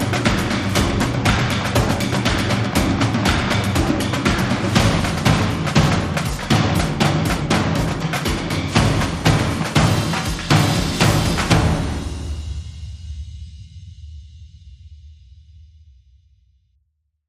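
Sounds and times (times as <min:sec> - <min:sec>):
drums beating: 0:00.0 - 0:13.3.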